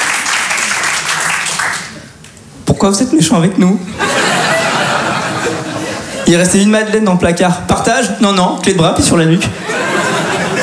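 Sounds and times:
audience applause: 0.0s - 2.0s
speech: 2.8s - 4.2s, 6.3s - 9.7s
laughter: 3.9s - 6.3s, 9.5s - 10.6s.

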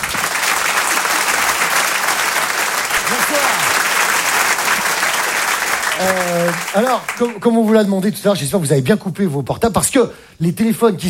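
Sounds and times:
audience applause and ovation: 0.0s - 7.9s
speech: 6.0s - 11.0s.

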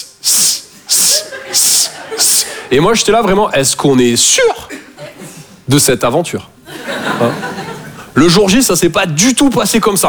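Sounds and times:
voice imitating a snake's hiss: 0.0s - 2.5s
laughter: 0.8s - 3.3s, 4.6s - 5.6s, 6.6s - 8.2s
speech: 1.5s - 4.8s, 5.7s - 6.6s, 7.2s - 7.5s, 8.2s - 10.0s.

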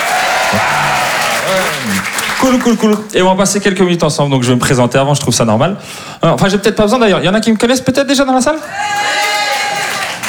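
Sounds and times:
audience applause: 0.0s - 3.1s, 8.6s - 10.2s
speech: 1.5s - 9.2s.

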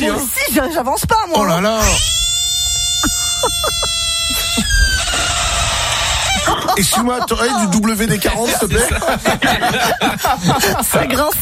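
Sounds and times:
speech: 0.0s - 2.3s, 3.0s - 5.3s, 6.4s - 11.3s
frog squealing cries: 1.5s - 8.0s
laughter: 3.0s - 11.3s.

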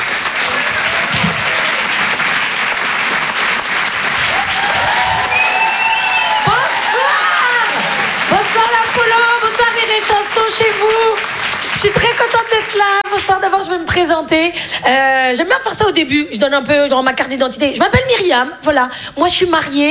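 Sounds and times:
comedy club audience cheers and whistles: 0.0s - 13.0s
comedy club audience clapping: 0.0s - 14.1s
speech: 10.0s - 19.8s.

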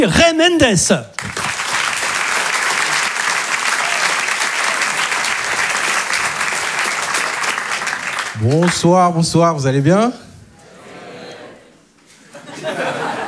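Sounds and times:
speech: 0.0s - 1.5s, 8.4s - 10.2s
audience applause: 1.2s - 9.1s
laughter: 10.5s - 13.2s.

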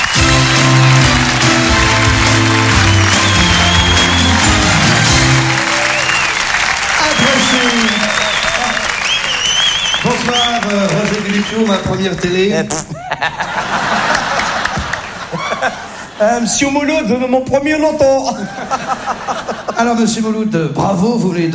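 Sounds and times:
audience applause: 0.0s - 12.2s, 13.6s - 16.1s
speech: 11.5s - 13.5s, 15.6s - 21.5s
laughter: 12.9s - 16.2s, 18.2s - 20.0s.

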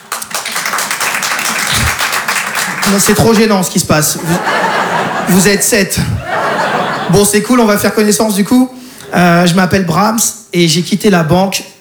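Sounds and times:
sparse applause from a small audience at a stand-up comedy show: 0.0s - 3.5s
laughter: 1.1s - 7.5s
speech: 2.9s - 6.5s, 7.1s - 11.7s.

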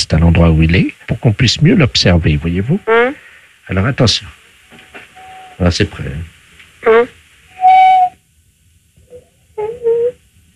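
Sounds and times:
speech: 0.1s - 4.4s, 5.6s - 7.1s
parrot whistling: 5.2s - 5.6s, 6.8s - 8.2s, 9.1s - 10.2s.

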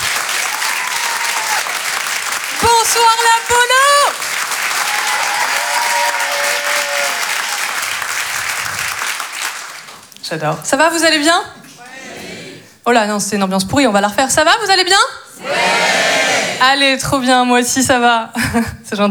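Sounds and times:
audience applause at the Apollo Théâtre comedy club in Paris: 0.0s - 10.2s
speech: 2.8s - 3.8s, 10.3s - 11.6s, 12.8s - 15.9s, 16.6s - 19.0s.

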